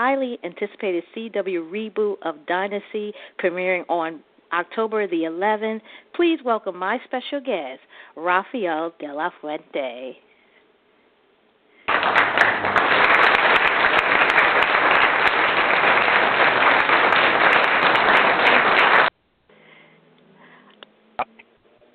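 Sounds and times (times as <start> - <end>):
speech: 0.0 - 10.3
audience applause: 11.9 - 19.1.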